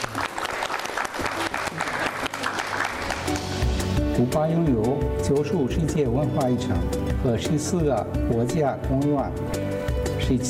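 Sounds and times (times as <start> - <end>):
large audience applause: 0.0 - 3.8
speech: 4.2 - 9.7, 10.3 - 10.4.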